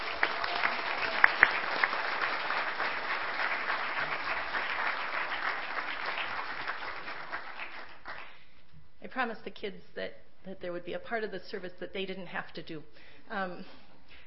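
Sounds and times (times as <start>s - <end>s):
audience applauding children: 0.0s - 8.3s
speech: 9.2s - 13.8s.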